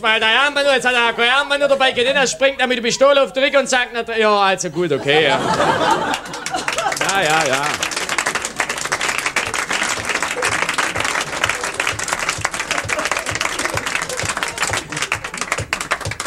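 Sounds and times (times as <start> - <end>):
speech: 0.0 - 6.4, 7.1 - 7.9
laughter: 0.1 - 16.2
crowd applauding: 5.1 - 16.2.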